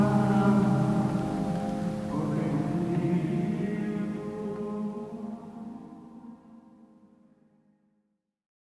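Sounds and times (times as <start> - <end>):
vespers service at Santo Domingo de Silos: 0.0 - 5.9.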